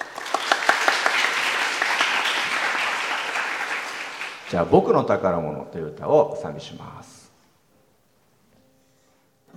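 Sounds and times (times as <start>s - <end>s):
audience applause: 0.0s - 4.5s
speech: 4.5s - 7.2s.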